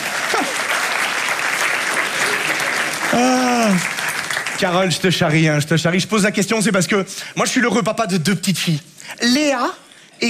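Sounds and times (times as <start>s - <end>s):
audience applause: 0.0s - 5.2s
speech: 0.4s - 0.7s, 3.1s - 3.9s, 4.6s - 10.2s.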